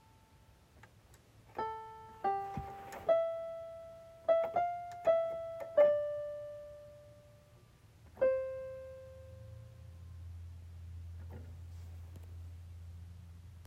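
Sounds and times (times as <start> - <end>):
piano: 0.0 - 0.6, 1.4 - 11.7.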